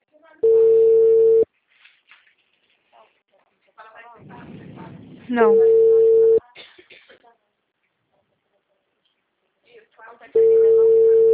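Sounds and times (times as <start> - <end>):
telephone line tone of a call forwarded to voicemail: 0.4 - 1.4, 5.5 - 6.4, 10.4 - 11.3
speech: 5.3 - 5.8.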